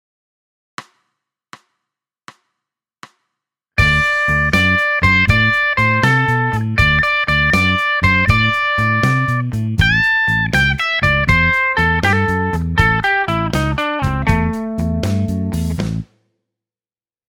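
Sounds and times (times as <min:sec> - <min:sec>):
blues music: 0:03.8 - 0:16.0.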